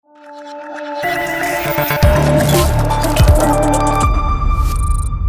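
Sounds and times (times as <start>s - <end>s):
digital advertising logo jingle: 1.0s - 5.1s.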